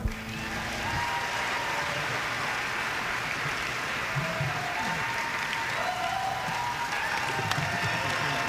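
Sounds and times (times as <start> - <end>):
audience applause: 0.1 - 8.4.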